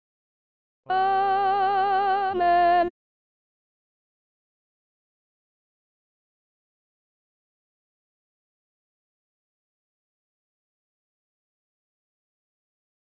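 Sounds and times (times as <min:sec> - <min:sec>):
soprano choir section singing a guide part: 0:00.9 - 0:02.9.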